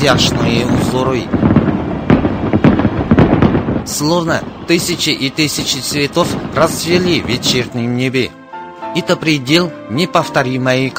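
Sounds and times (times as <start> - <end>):
speech: 0.0 - 1.5, 3.9 - 10.9
fireworks exploding: 0.0 - 7.8.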